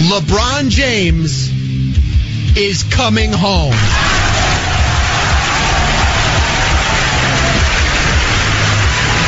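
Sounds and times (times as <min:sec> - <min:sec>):
speech: 0:00.1 - 0:01.5, 0:02.5 - 0:04.1
applause: 0:03.8 - 0:09.2.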